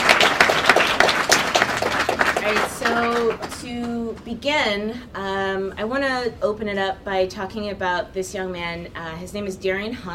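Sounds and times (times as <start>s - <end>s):
audience applause: 0.0s - 3.7s
speech: 2.5s - 10.1s.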